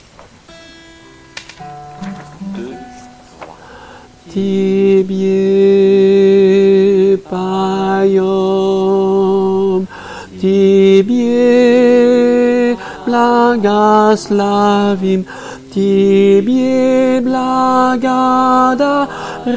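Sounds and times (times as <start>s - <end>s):
tenor singing chorale: 4.1s - 19.5s.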